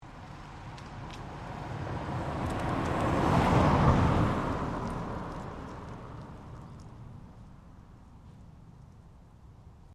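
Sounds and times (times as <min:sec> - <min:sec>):
Ford Focus car driving by: 0:00.4 - 0:06.9.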